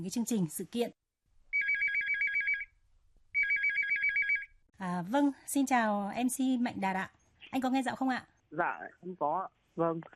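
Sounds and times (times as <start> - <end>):
speech: 0.0 - 1.0, 4.8 - 10.1
telephone ringing as a call is put through to a radio show: 1.5 - 4.6.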